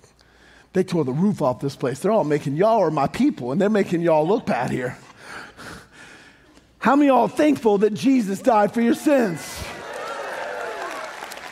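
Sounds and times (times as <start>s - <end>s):
speech: 0.7s - 5.0s, 6.9s - 9.6s
audience clapping: 9.2s - 11.4s.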